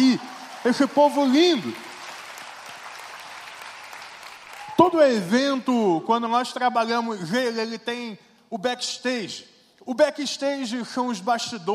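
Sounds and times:
speech: 0:00.0 - 0:01.9, 0:04.9 - 0:11.7
audience applause: 0:00.0 - 0:05.1.

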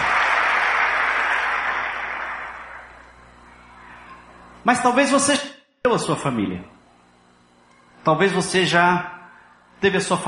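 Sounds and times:
audience applause: 0:00.0 - 0:03.0
speech: 0:04.6 - 0:06.8, 0:08.0 - 0:09.2, 0:09.8 - 0:10.2.

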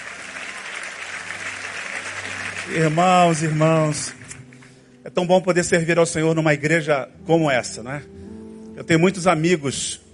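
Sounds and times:
audience applauding: 0:00.0 - 0:04.8
speech: 0:02.7 - 0:04.4, 0:05.0 - 0:08.2, 0:08.8 - 0:10.0.

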